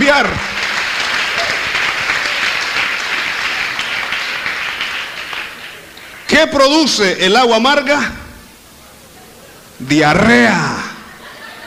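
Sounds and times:
audience applauding: 0:00.0 - 0:06.3
speech: 0:00.1 - 0:00.5, 0:06.4 - 0:08.2, 0:09.8 - 0:10.7
laughter: 0:10.8 - 0:11.6.

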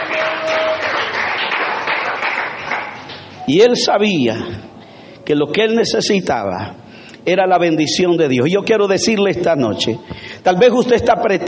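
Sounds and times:
audience applause: 0:00.0 - 0:03.3
speech: 0:03.5 - 0:04.7, 0:05.3 - 0:11.4.

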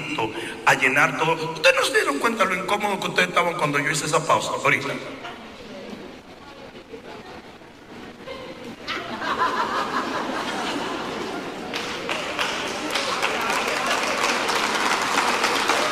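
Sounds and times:
speech: 0:00.2 - 0:05.3
laughter: 0:08.1 - 0:12.9
audience applause: 0:10.5 - 0:15.9.

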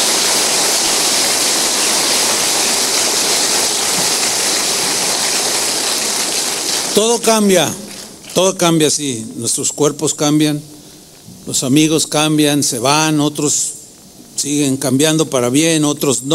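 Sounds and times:
audience applause: 0:00.0 - 0:08.5
speech: 0:07.0 - 0:07.8, 0:08.4 - 0:10.8, 0:11.4 - 0:13.8, 0:14.4 - 0:16.3.

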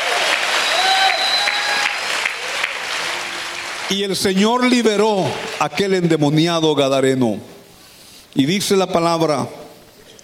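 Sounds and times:
crowd clapping: 0:00.0 - 0:06.4
speech: 0:03.9 - 0:07.5, 0:08.4 - 0:09.6.

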